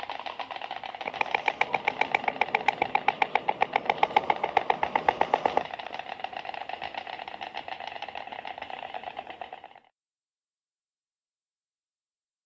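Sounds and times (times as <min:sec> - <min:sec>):
stork clattering: 0:00.0 - 0:09.8.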